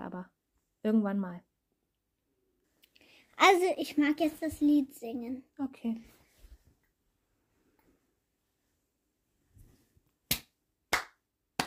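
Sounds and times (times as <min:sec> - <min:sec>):
speech: 0:00.8 - 0:01.5, 0:03.4 - 0:06.2
group hand clapping: 0:10.3 - 0:11.6.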